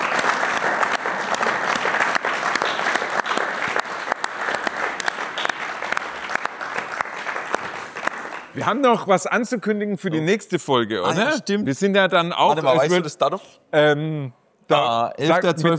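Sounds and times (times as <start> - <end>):
applause: 0.0 - 9.0
speech: 8.6 - 15.7.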